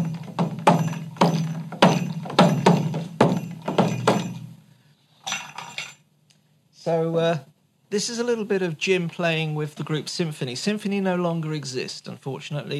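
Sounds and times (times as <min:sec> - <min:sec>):
percussion bell being struck: 0:00.0 - 0:04.5
speech: 0:06.9 - 0:12.7.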